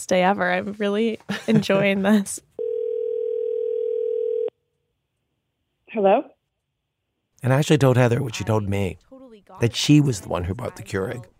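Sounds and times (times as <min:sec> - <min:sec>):
speech: 0:00.0 - 0:02.5, 0:05.9 - 0:06.4, 0:07.4 - 0:11.3
electronic telephone ringing tone: 0:02.6 - 0:04.6.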